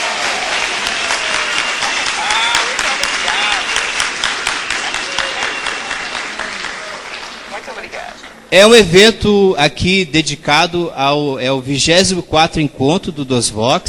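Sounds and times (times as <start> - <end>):
audience applause: 0.0 - 8.4
speech: 8.5 - 13.8.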